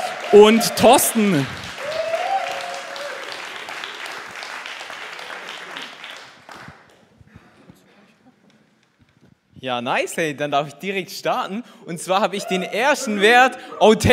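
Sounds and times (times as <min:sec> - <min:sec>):
audience applause: 0:00.0 - 0:07.1
speech: 0:00.3 - 0:01.7, 0:09.6 - 0:14.1.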